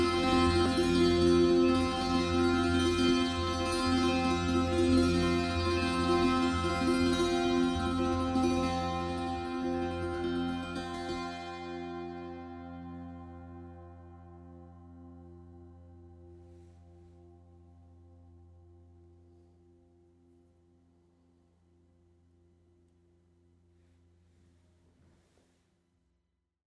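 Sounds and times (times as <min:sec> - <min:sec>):
tamburina tuned c f f f played in steady strumming: 0:00.0 - 0:13.5.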